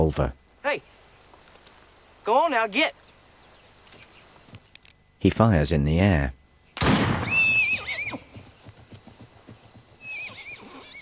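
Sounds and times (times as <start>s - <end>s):
speech: 0.0s - 0.9s, 2.3s - 3.0s, 5.2s - 6.4s
colt neighing: 7.3s - 8.4s, 10.0s - 11.0s
colt galloping hoofbeats: 7.3s - 11.0s.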